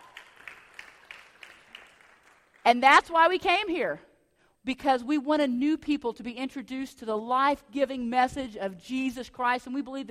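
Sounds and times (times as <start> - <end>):
audience clapping: 0.0 - 2.7
speech: 2.7 - 10.0.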